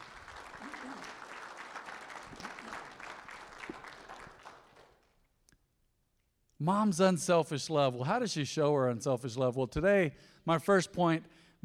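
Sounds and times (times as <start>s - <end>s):
church audience applauding: 0.0s - 5.1s
speech: 6.6s - 11.6s.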